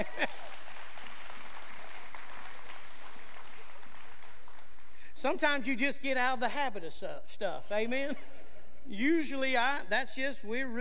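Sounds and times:
speech: 0:00.0 - 0:00.4, 0:05.2 - 0:10.7
audience clapping: 0:00.0 - 0:05.1.

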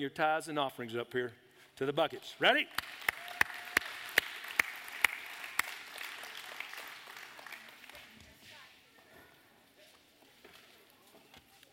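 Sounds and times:
speech: 0:00.0 - 0:03.2
audience applause: 0:02.4 - 0:08.2.

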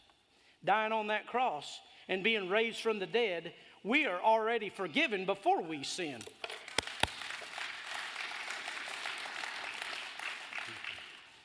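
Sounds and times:
speech: 0:00.6 - 0:06.6
hand clapping: 0:06.4 - 0:11.4.

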